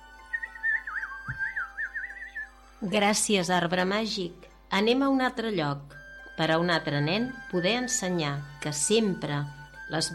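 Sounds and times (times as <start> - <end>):
person whistling a birdsong-like melody: 0.2 - 2.6
speech: 2.8 - 10.1.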